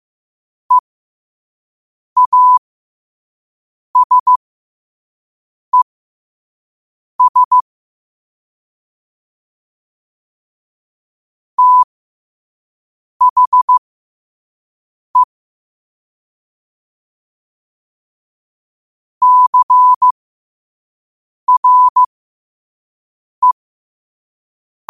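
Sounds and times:
morse code at 5 wpm: 2.2 - 2.6, 4.0 - 4.4, 7.2 - 7.6, 11.6 - 11.9, 13.2 - 13.8, 19.2 - 20.1, 21.5 - 22.1.

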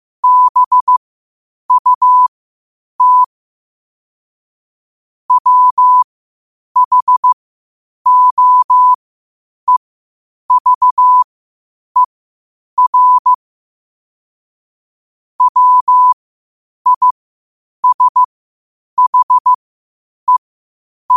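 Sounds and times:
morse code at 5 wpm: 0.2 - 1.0, 1.7 - 2.3, 3.0 - 3.3, 5.3 - 6.0, 6.8 - 7.4, 8.1 - 9.0, 10.5 - 11.3, 12.8 - 13.4, 15.4 - 16.2, 16.9 - 17.1, 17.8 - 18.3, 19.0 - 19.6.

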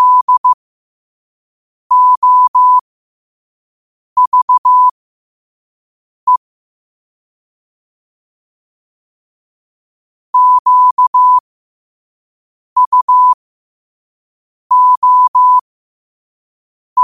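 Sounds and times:
morse code at 5 wpm: 0.0 - 0.6, 1.9 - 2.8, 4.2 - 4.9, 10.4 - 11.4, 12.8 - 13.4, 14.7 - 15.6.

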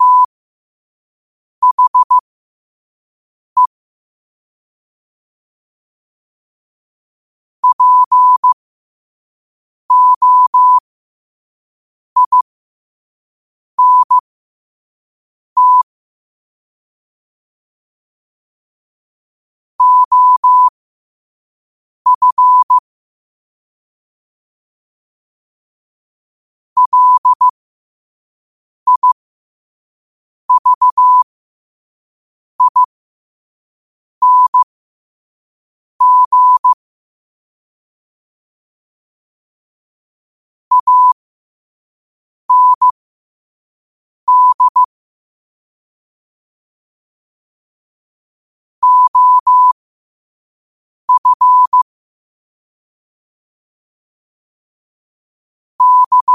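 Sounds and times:
morse code at 5 wpm: 0.0 - 0.3, 1.6 - 2.2, 7.6 - 8.6, 9.9 - 10.8, 12.2 - 12.4, 13.8 - 14.2, 15.6 - 15.9, 19.8 - 20.7, 22.1 - 22.8, 26.8 - 27.6, 28.9 - 29.2, 30.5 - 31.3, 32.6 - 32.9, 34.2 - 34.7, 36.0 - 36.8, 40.7 - 41.2, 42.5 - 43.0, 44.3 - 44.9, 48.8 - 49.8, 51.1 - 51.9, 55.8 - 56.3.

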